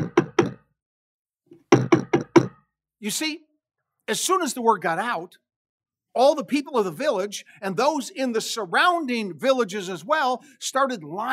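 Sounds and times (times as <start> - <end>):
knocking at the door of a house: 0.0 - 0.6, 1.7 - 2.6
speech: 3.0 - 3.5, 4.1 - 5.4, 6.1 - 11.3.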